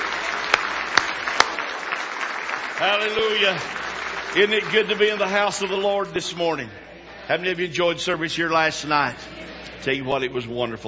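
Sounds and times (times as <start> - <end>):
audience hand clapping: 0.0 - 6.4
speech: 2.8 - 10.8.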